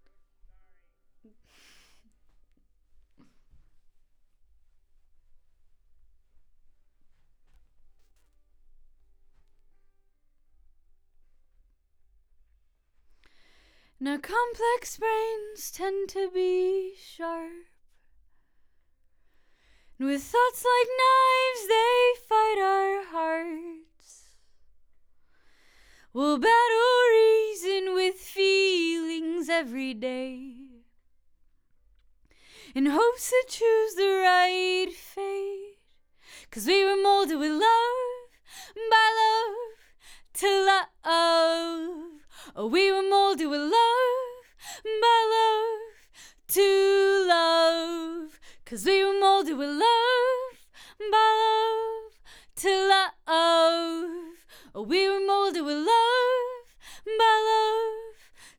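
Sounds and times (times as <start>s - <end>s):
vocals: 13.2s - 18.1s, 19.6s - 24.7s, 25.4s - 31.0s, 32.3s - 58.5s.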